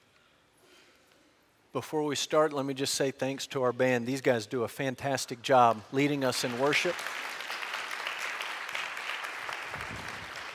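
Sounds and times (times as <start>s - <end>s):
speech: 1.7s - 7.2s
audience clapping for the band: 5.4s - 10.5s.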